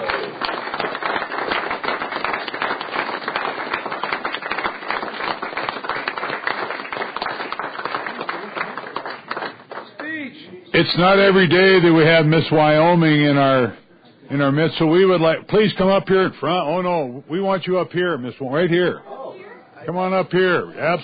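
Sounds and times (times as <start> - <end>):
applause welcoming Miss Wyoming 2017 in the Wyoming Senate: 0.0 - 10.2
speech: 10.8 - 19.1, 19.9 - 21.0.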